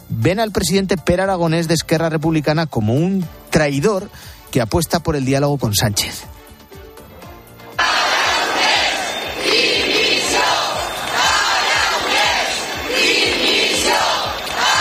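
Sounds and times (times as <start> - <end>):
speech: 0.2 - 6.4
crowd chanting resignation shouts in Gerona: 7.8 - 14.7.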